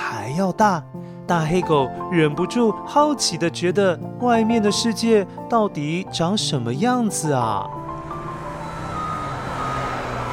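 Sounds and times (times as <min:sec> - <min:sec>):
speech: 0:00.4 - 0:07.8
garbage truck engine idling: 0:07.7 - 0:10.3
garbage truck high-pitched reversing beep: 0:08.4 - 0:10.3.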